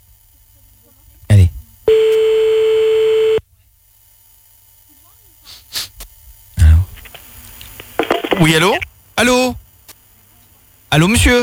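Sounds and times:
telephone ringing tone: 0:01.9 - 0:03.4
speech: 0:08.5 - 0:09.6, 0:10.9 - 0:11.4.

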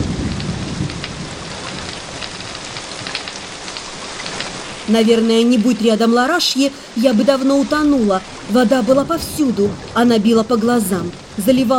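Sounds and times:
rumbling thunder: 0:00.0 - 0:04.9, 0:07.6 - 0:11.7
heavy rain downpour: 0:00.0 - 0:11.7
speech: 0:04.9 - 0:11.7.

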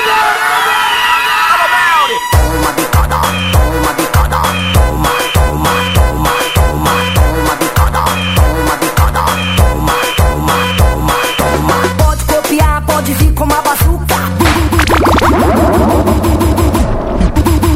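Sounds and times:
crowd at a live DJ party in Santa Maria de Benfica shouting and cheering: 0:00.0 - 0:03.7
thumping dance beat: 0:02.4 - 0:17.7.

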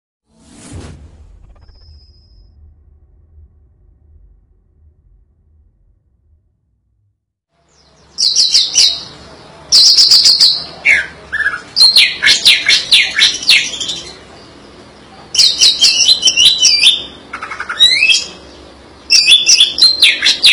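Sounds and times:
Greater green leafbird song: 0:07.6 - 0:20.5.

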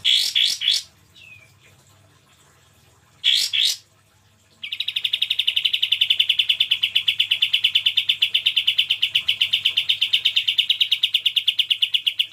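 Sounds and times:
cream-vented bulbul song: 0:00.0 - 0:01.6, 0:04.6 - 0:12.3.

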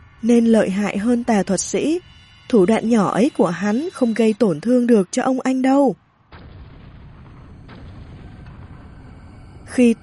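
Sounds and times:
speech: 0:00.2 - 0:06.0, 0:09.8 - 0:10.0
explosion sound effect: 0:06.3 - 0:10.0.

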